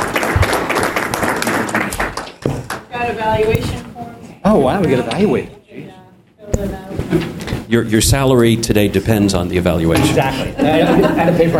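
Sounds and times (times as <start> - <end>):
audience applauding for panelists: 0.0 - 2.9
speech: 3.1 - 3.8, 4.5 - 5.6, 7.1 - 11.5
laughter: 10.0 - 11.5.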